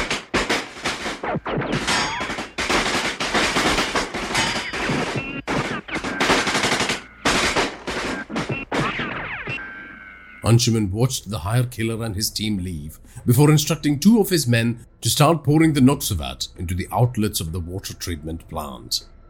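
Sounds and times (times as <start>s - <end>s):
automatic machine-gun fire from armed fire teams engaging intruders: 0.0s - 9.6s
speech: 1.3s - 2.1s, 10.5s - 19.2s.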